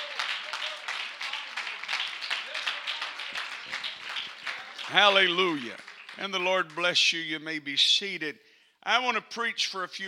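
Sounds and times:
crowd clapping: 0.0 - 7.2
speech: 4.9 - 10.0.

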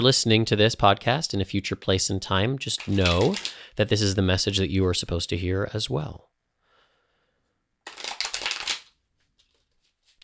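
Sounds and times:
speech: 0.0 - 6.3
tarot cards being shuffled: 2.8 - 3.6, 7.9 - 10.2.

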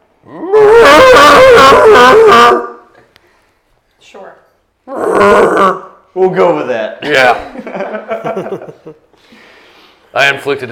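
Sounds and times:
person imitating an anguished scream of pain: 0.3 - 2.8, 4.9 - 5.9
speech: 6.2 - 10.7
laughter: 7.0 - 9.1.

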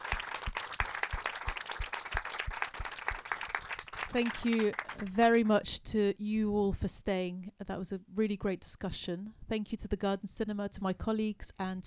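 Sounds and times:
audience applause: 0.0 - 5.1
speech: 4.1 - 11.8.

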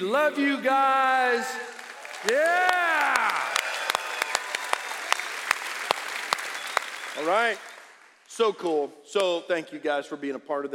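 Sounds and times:
speech: 0.0 - 3.4, 7.2 - 7.7, 8.4 - 10.7
audience cheering and clapping: 0.7 - 8.1.

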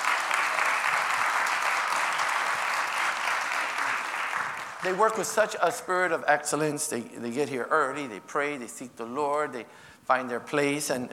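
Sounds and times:
audience hand clapping: 0.0 - 5.2
speech: 4.8 - 11.1.

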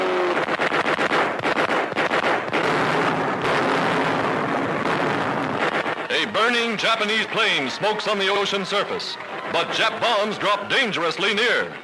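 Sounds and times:
anti-aircraft gunfire: 0.0 - 7.4
speech: 6.2 - 11.8.

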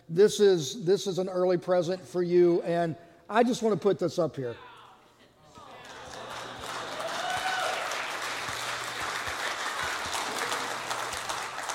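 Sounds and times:
speech: 0.1 - 4.7
audience clapping: 5.6 - 11.7.

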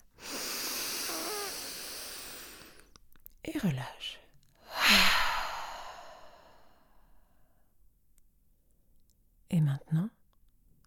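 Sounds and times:
deep inhalation: 0.0 - 2.9, 4.6 - 7.2
speech: 3.6 - 4.2, 9.5 - 10.2.

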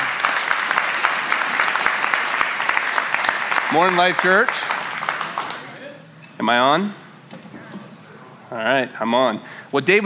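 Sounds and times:
church congregation applause welcoming a preacher: 0.0 - 5.7
speech: 3.7 - 4.7, 6.4 - 7.0, 8.5 - 10.0.

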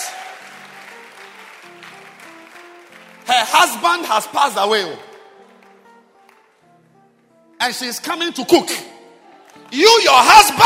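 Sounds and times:
cooking event audience clapping for a culinary contestant: 0.0 - 6.7, 9.2 - 10.6
speech: 3.3 - 5.1, 7.6 - 8.9, 9.7 - 10.6.

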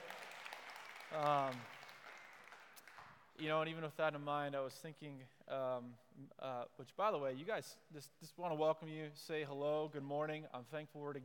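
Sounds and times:
audience clapping: 0.0 - 3.4
speech: 1.1 - 1.8, 3.4 - 11.2.

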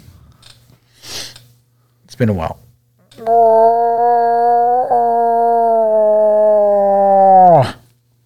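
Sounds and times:
speech: 2.1 - 2.6, 3.2 - 3.7
person imitating a cow moose call: 3.2 - 7.8.

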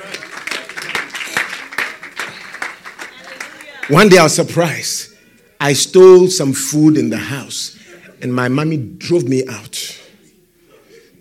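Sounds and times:
crowd applauding: 0.0 - 4.8
speech: 3.9 - 9.9.

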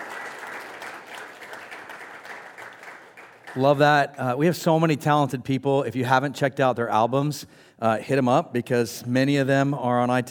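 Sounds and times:
audience round of applause: 0.0 - 3.8
speech: 3.6 - 10.2.

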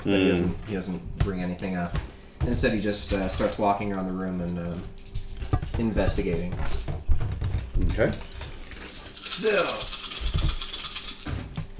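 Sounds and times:
speech: 0.0 - 5.2, 5.8 - 7.2, 7.8 - 8.4, 9.4 - 9.9
dice being rolled: 8.8 - 11.4.

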